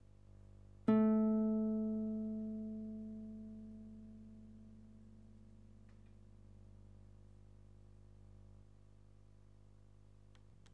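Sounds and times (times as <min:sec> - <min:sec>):
guitar: 0:00.9 - 0:05.8.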